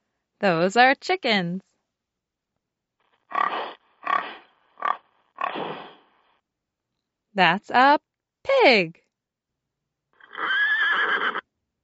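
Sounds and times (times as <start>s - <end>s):
speech: 0.4s - 1.7s, 7.4s - 9.0s
horse neighing: 10.2s - 11.4s.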